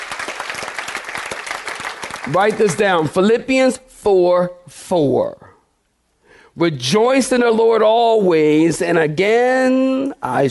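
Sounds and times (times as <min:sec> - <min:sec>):
audience clapping hands: 0:00.0 - 0:03.1
speech: 0:02.2 - 0:05.5, 0:06.6 - 0:10.4.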